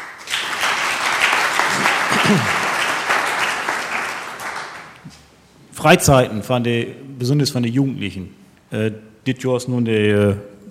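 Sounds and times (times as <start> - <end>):
audience applause: 0.0 - 5.0
speech: 2.3 - 2.6, 5.8 - 10.6.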